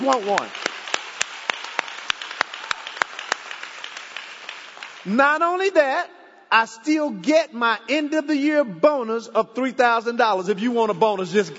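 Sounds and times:
speech: 0.0 - 0.6, 5.0 - 11.5
audience clapping: 0.0 - 5.2.

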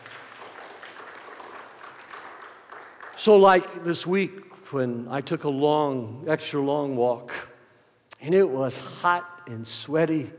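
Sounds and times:
audience clapping hands: 0.0 - 3.7
speech: 3.2 - 7.5, 8.2 - 10.3.

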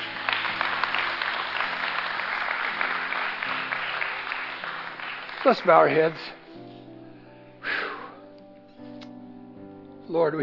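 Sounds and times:
audience clapping: 0.0 - 6.5
speech: 5.4 - 6.4, 10.1 - 10.4.

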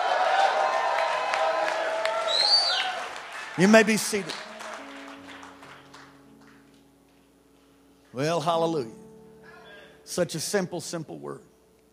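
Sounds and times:
audience shouting: 0.0 - 4.4
audience clapping: 0.0 - 6.8
speech: 3.6 - 4.5, 8.2 - 9.0, 10.1 - 11.5.

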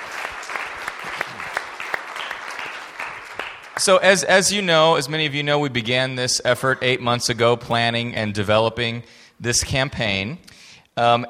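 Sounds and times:
audience applause: 0.0 - 4.0
speech: 3.8 - 11.2.

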